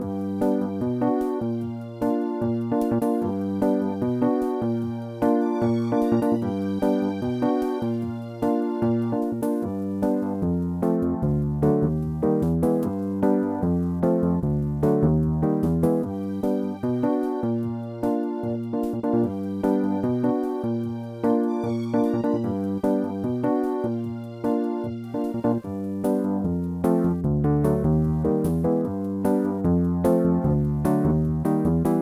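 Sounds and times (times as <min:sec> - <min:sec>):
elevator music: 0:00.2 - 0:32.0.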